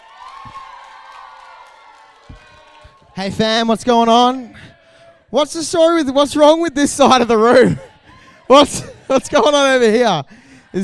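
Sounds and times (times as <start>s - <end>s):
audience applause and cheering: 0.0s - 3.5s
speech: 3.2s - 7.9s, 8.5s - 10.8s
laughter: 6.9s - 10.8s.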